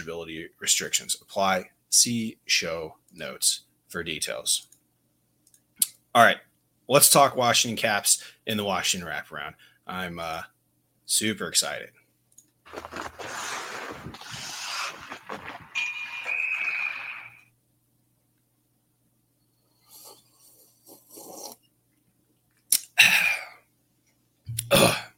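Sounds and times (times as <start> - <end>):
speech: 0.0 - 4.7, 6.1 - 10.5, 11.1 - 12.0, 12.7 - 13.5
person slurping a sip of bourbon: 12.7 - 17.4.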